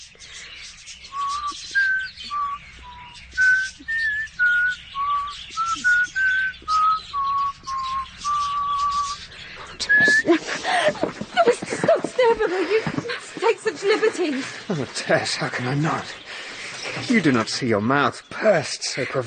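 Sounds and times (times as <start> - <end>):
person whistling a simple halting tune: 1.1 - 9.2, 9.8 - 10.3
laughter: 9.8 - 16.1
speech: 14.2 - 16.2, 17.0 - 19.2.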